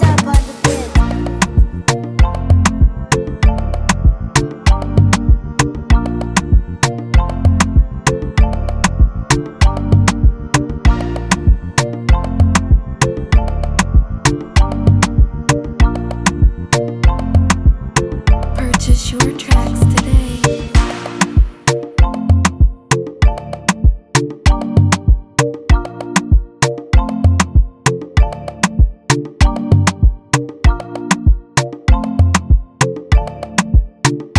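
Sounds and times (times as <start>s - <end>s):
beat in A major: 0.0s - 34.3s.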